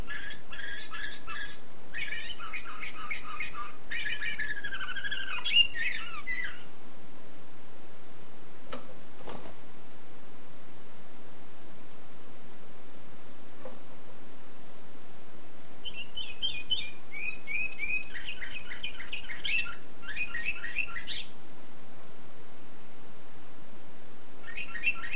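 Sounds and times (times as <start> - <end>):
canary song: 0.0 - 6.8, 15.7 - 21.4, 24.4 - 25.1.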